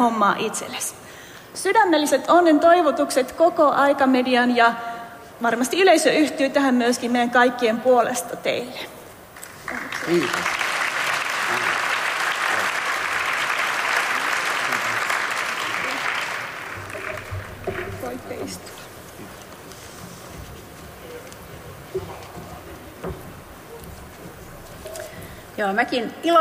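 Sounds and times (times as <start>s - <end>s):
speech: 0.0s - 9.0s, 9.7s - 10.6s, 25.6s - 26.3s
audience applause: 9.4s - 18.7s.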